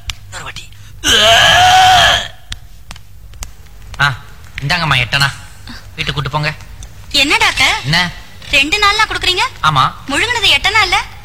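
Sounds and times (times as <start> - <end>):
voice imitating vomiting: 1.0 - 2.4
speech: 4.7 - 5.4, 6.0 - 11.1.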